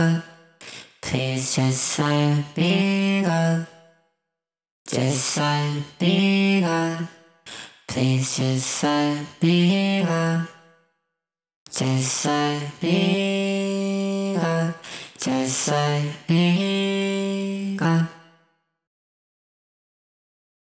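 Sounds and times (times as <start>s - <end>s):
clean vocals: 0.0s - 3.8s, 4.9s - 10.6s, 11.7s - 18.3s.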